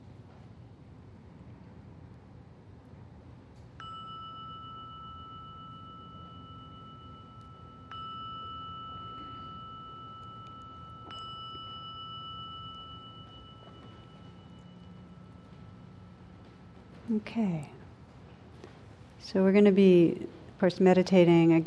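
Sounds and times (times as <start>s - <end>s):
meditation gong ringing: 3.8s - 17.3s
speech: 17.1s - 17.8s, 19.3s - 21.6s.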